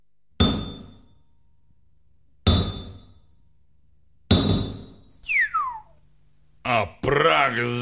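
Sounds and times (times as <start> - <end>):
heavy hammer striking metal: 0.4 - 1.1, 2.5 - 3.4, 4.3 - 5.1
sharp falling whistle-like tone: 5.2 - 6.0
speech: 6.8 - 7.7.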